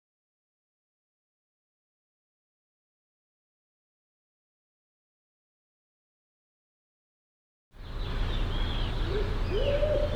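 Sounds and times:
low hooting arched bird calls: 7.8 - 10.1.

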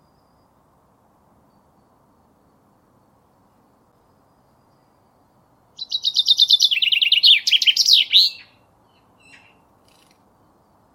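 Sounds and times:
common chaffinch singing: 5.8 - 9.6.

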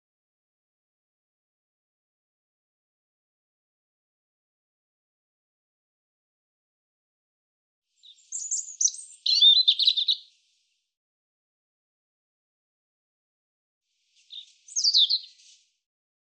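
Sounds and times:
European robin singing: 8.0 - 10.4, 14.2 - 15.6.

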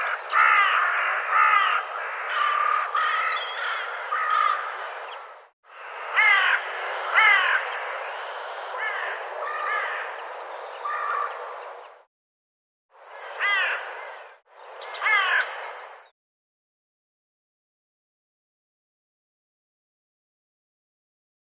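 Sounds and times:
bird giving harsh nasal cawing calls: 0.0 - 5.0, 5.7 - 11.6, 13.2 - 15.9.

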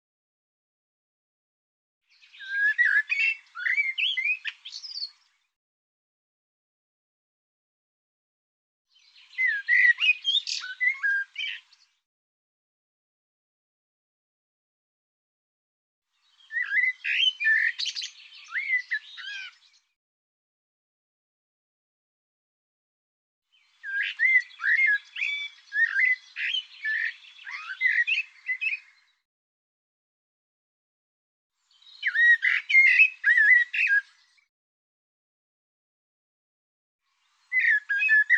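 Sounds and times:
bird song of squeaky slurred whistles: 2.1 - 5.4, 8.9 - 12.0, 16.2 - 20.0, 23.5 - 29.2, 31.7 - 34.5, 37.1 - 38.3.

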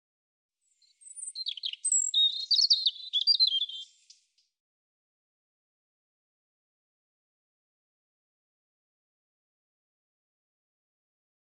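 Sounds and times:
European robin song: 0.6 - 4.4.

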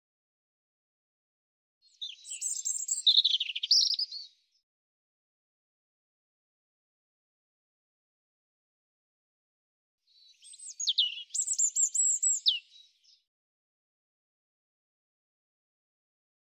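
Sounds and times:
European robin singing: 1.8 - 4.5, 10.1 - 13.3.

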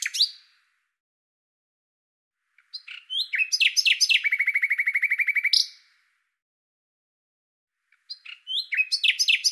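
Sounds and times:
common nightingale singing: 0.0 - 0.6, 2.5 - 5.9, 7.8 - 9.5.

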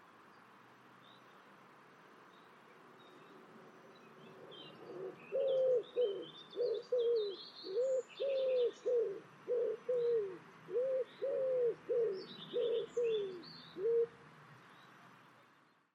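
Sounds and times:
bird giving low cooing notes: 4.4 - 14.2.

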